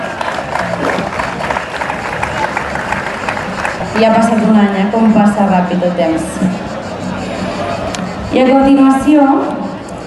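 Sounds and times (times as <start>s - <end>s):
audience applause: 0.0s - 4.1s
speech: 4.0s - 6.6s, 8.3s - 9.6s.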